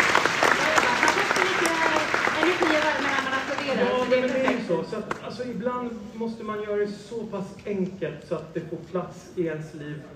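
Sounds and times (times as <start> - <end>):
audience applause: 0.0 - 4.7
speech: 4.7 - 10.1.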